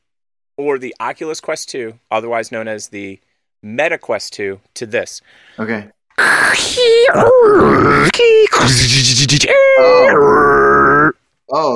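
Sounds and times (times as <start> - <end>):
speech: 0.6 - 10.7, 11.5 - 11.7
voice imitating dial-up modem connecting: 6.2 - 11.1.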